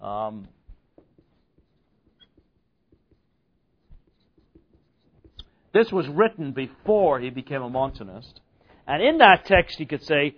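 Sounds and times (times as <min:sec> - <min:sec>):
speech: 0:00.0 - 0:00.6, 0:05.8 - 0:10.3
writing on a board: 0:00.6 - 0:05.6.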